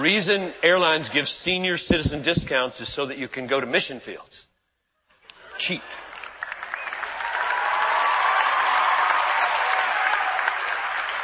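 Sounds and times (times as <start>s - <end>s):
speech: 0.0s - 4.5s, 5.6s - 6.0s
audience clapping: 5.9s - 11.2s.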